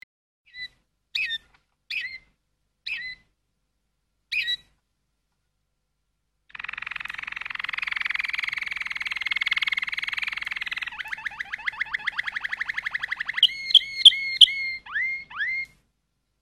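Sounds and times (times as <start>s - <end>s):
Waterslager canary song: 0.5s - 3.3s, 4.3s - 4.8s, 6.5s - 15.8s.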